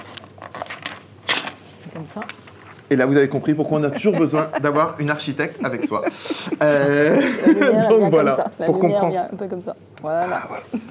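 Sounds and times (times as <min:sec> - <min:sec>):
paper sheet being torn: 0:00.0 - 0:01.8
speech: 0:02.0 - 0:10.9
laughter: 0:03.6 - 0:08.6.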